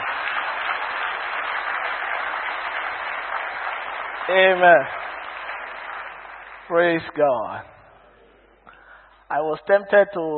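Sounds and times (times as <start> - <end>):
congregation clapping during a church service: 0.0 - 8.0
speech: 4.3 - 5.0, 6.7 - 7.7, 9.3 - 10.3.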